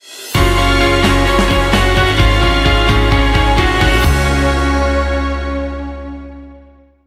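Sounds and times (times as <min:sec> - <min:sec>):
drums: 0:00.0 - 0:05.5.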